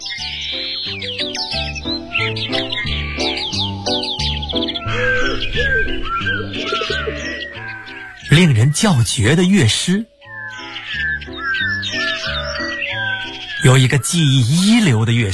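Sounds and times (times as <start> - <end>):
small birds chirping: 0.0 - 15.3
speech: 0.5 - 1.6, 8.4 - 10.1, 13.6 - 15.3.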